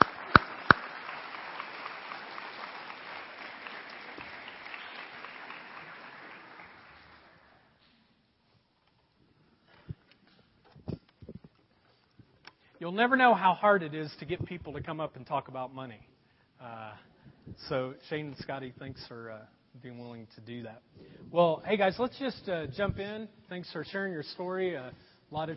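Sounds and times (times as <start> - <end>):
audience applause welcoming guests to the stage: 0.0 - 7.7
speech: 12.8 - 25.5.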